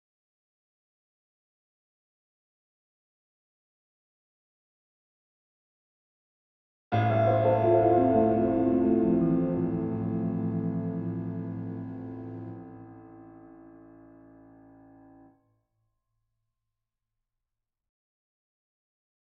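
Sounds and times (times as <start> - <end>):
piano: 6.9 - 15.3.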